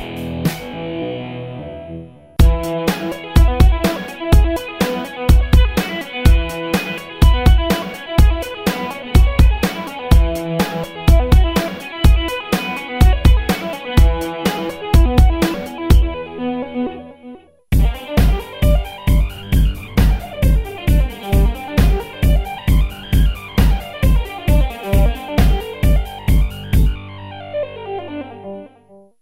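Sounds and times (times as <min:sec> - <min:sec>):
arpeggio sequences: 0:00.0 - 0:17.2, 0:17.8 - 0:28.8.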